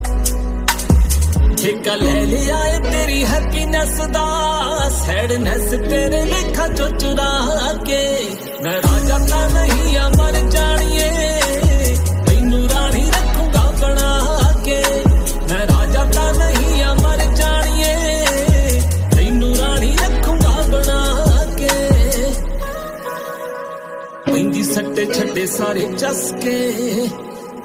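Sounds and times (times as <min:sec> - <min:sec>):
Punjabi love song ringtone: 0:00.0 - 0:27.6.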